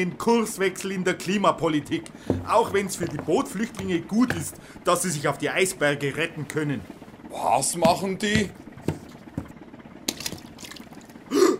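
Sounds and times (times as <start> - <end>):
speech: 0.0 - 8.6
immersion heater in water, drips and sloshing clicks: 10.1 - 11.2.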